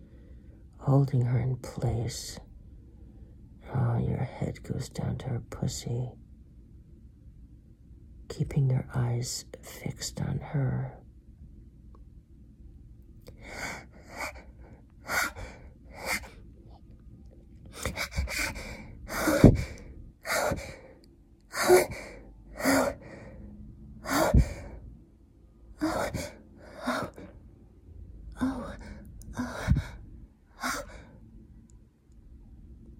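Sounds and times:
speech: 0:00.8 - 0:02.5, 0:04.0 - 0:06.2, 0:08.3 - 0:11.0
heavy breathy panting: 0:13.4 - 0:16.4, 0:17.7 - 0:20.9, 0:21.5 - 0:23.4, 0:24.0 - 0:24.8, 0:25.8 - 0:27.3, 0:28.4 - 0:30.0.

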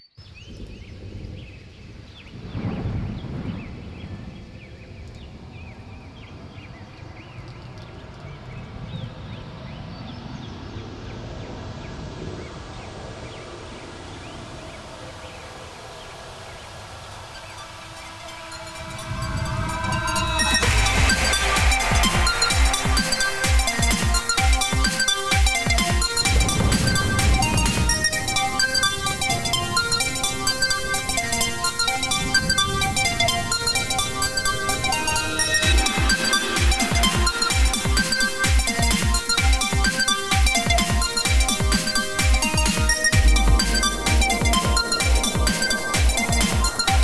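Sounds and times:
rainwater beat: 0:17.4 - 0:47.0.

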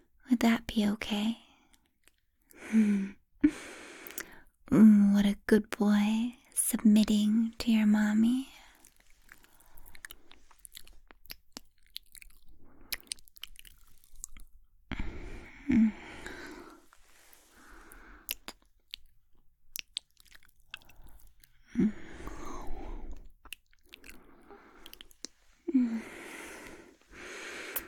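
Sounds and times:
speech: 0:00.3 - 0:01.4, 0:02.7 - 0:03.7, 0:04.7 - 0:08.6
wet mouth sounds of nibbling and chewing on a neck: 0:08.7 - 0:27.8.

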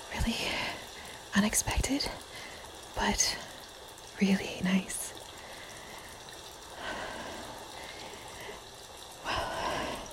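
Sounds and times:
rain easing up: 0:00.0 - 0:10.1
speech: 0:00.2 - 0:00.6, 0:01.4 - 0:02.3, 0:03.0 - 0:03.5, 0:04.2 - 0:05.1.

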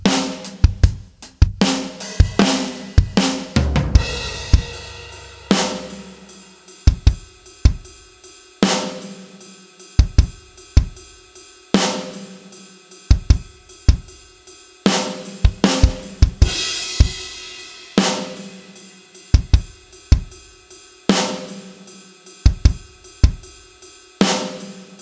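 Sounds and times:
different drums: 0:00.0 - 0:25.0.

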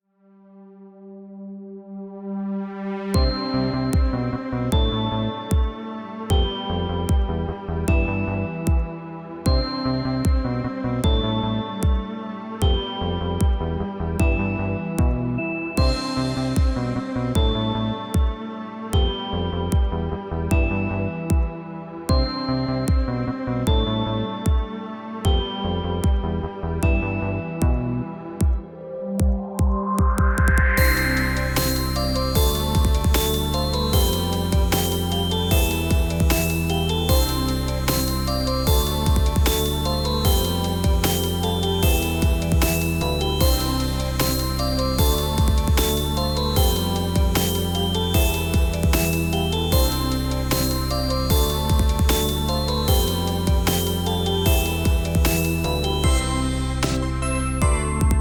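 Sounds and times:
ambient electronic music: 0:00.6 - 0:58.1.

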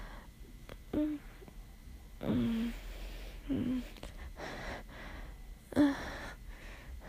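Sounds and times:
quiet whimpers: 0:00.8 - 0:01.5, 0:02.2 - 0:04.9, 0:05.7 - 0:06.4.

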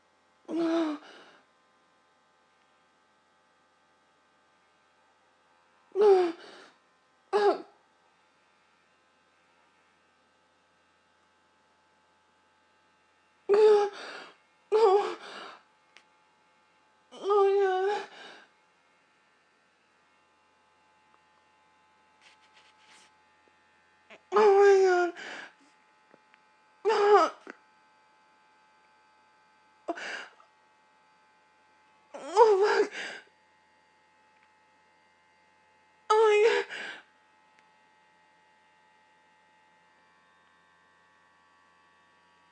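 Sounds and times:
person moaning: 0:00.5 - 0:01.3, 0:06.0 - 0:06.7, 0:07.4 - 0:07.7, 0:13.5 - 0:15.6, 0:17.2 - 0:18.4, 0:24.1 - 0:25.6, 0:26.9 - 0:27.5, 0:32.2 - 0:33.2, 0:36.1 - 0:37.0.

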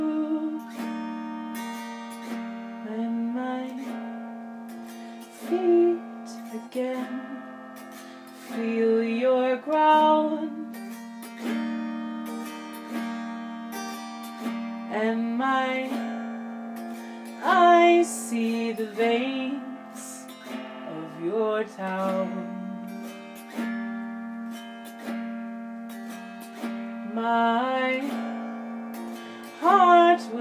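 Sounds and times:
person singing an original song: 0:00.0 - 0:02.2, 0:02.8 - 0:04.3, 0:05.3 - 0:07.8, 0:08.4 - 0:11.0, 0:14.8 - 0:16.4, 0:17.3 - 0:23.1, 0:27.0 - 0:28.6, 0:29.3 - 0:30.4
autoharp: 0:00.0 - 0:30.4.

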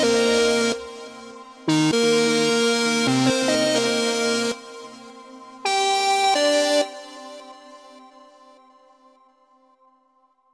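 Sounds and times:
trance music: 0:00.0 - 0:08.2.

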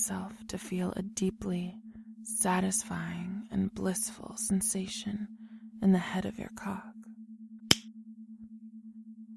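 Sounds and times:
low pulsing hum: 0:00.0 - 0:09.3
speech: 0:00.1 - 0:06.9
finger snap: 0:07.7 - 0:07.9.

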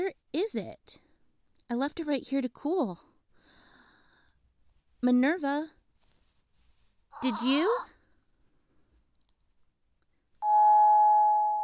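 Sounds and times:
speech: 0:00.0 - 0:01.0, 0:01.7 - 0:03.1, 0:05.0 - 0:05.8, 0:07.1 - 0:08.0
doorbell ringing with a sustained electronic tone: 0:10.4 - 0:11.6.

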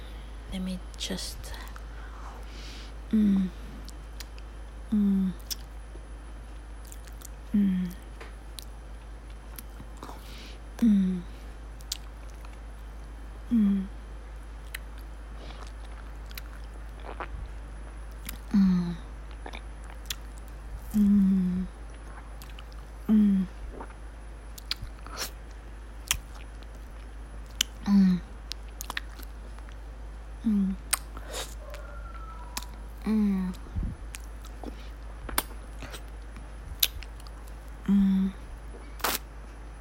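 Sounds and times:
speech: 0:00.5 - 0:01.7, 0:03.1 - 0:03.6, 0:04.9 - 0:05.6, 0:07.5 - 0:08.0, 0:10.8 - 0:11.3
person biting and eating soft ice cream: 0:01.6 - 0:05.8, 0:06.8 - 0:39.3.

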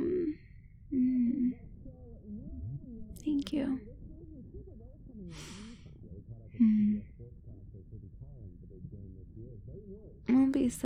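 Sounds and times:
yawn: 0:00.0 - 0:01.6
speech: 0:03.5 - 0:03.9, 0:08.8 - 0:10.8.

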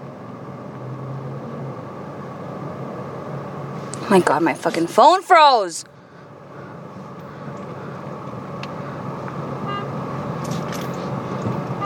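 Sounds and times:
road traffic rumble and idling engines: 0:00.0 - 0:11.8
speech: 0:04.1 - 0:05.9
car horn toot in traffic: 0:09.6 - 0:10.0, 0:11.6 - 0:11.8.

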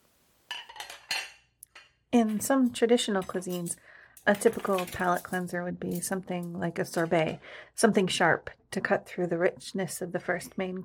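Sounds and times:
dishes and cutlery being cleared from a table: 0:00.5 - 0:02.0, 0:03.2 - 0:07.1
speech: 0:02.2 - 0:10.8.

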